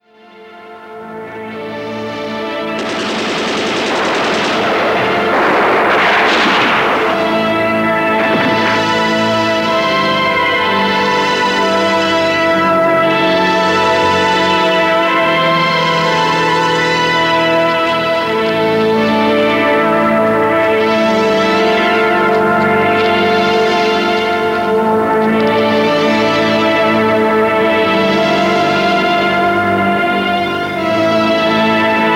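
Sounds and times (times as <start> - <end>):
synth score: 0.2 - 32.1.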